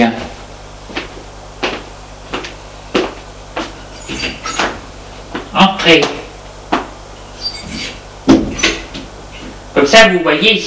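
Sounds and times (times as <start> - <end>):
door being opened: 4.0 - 4.8, 7.4 - 9.5
speech: 5.9 - 6.2, 9.9 - 10.6.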